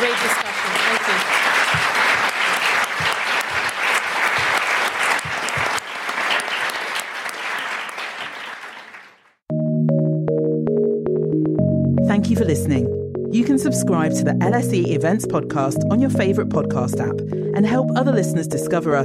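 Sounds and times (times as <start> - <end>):
audience applause for panelists at a public discussion event: 0.0 - 9.4
music: 9.5 - 19.0
speech: 13.8 - 19.0.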